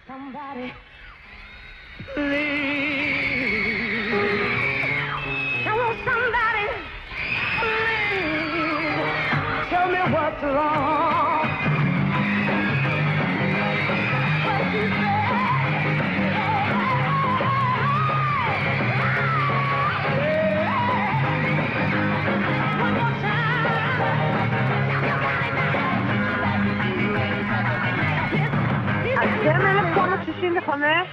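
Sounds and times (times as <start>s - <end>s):
singing voice: 0.0s - 0.9s, 2.1s - 4.7s, 7.6s - 11.6s, 14.3s - 21.3s, 22.4s - 30.7s
music: 0.0s - 31.1s
crowd of female fans screaming at a concert: 0.7s - 31.1s.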